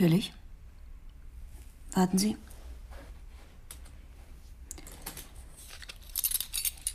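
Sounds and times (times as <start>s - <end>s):
speech: 0.0s - 0.4s, 2.0s - 2.5s
bunch of security-door keys jangling and clinking: 4.8s - 6.9s.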